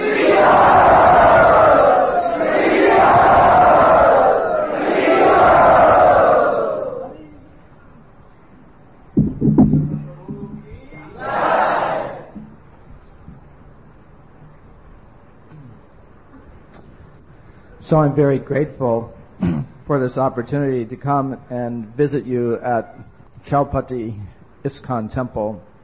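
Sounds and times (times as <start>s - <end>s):
temple audience at Radha Gopinath Temple shouting and cheering: 0.0s - 7.2s, 9.4s - 12.5s
knocks: 9.2s - 11.0s
speech: 17.9s - 25.7s.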